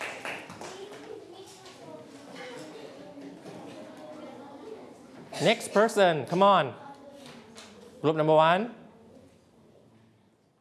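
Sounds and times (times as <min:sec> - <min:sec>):
classroom applause: 0:00.0 - 0:01.0
speech: 0:05.4 - 0:06.8, 0:08.0 - 0:08.8.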